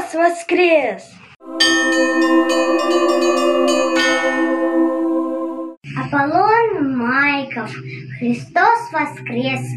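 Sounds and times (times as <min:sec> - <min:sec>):
speech: 0:00.2 - 0:03.3, 0:07.0 - 0:09.7
church bells pealing: 0:01.4 - 0:05.8.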